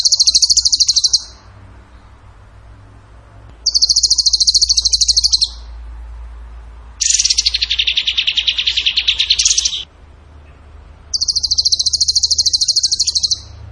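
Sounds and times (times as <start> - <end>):
bird rattling trills: 0.0 - 1.4, 3.6 - 5.6, 7.0 - 9.9, 11.1 - 13.5.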